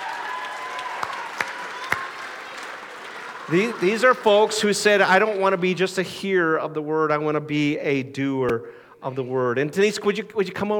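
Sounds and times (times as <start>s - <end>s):
audience round of applause: 0.0s - 5.6s
speech: 3.5s - 10.7s.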